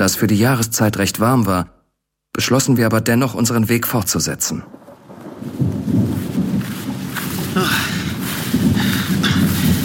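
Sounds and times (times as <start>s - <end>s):
speech: 0.0s - 1.8s, 2.4s - 4.8s, 7.6s - 8.0s
rain pattering: 3.2s - 9.8s
rolling thunder rumbling: 4.2s - 9.8s.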